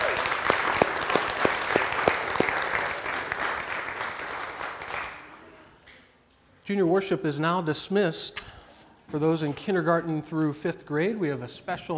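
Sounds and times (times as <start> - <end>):
audience applause: 0.0 - 5.4
speech: 6.7 - 8.4, 9.1 - 11.9.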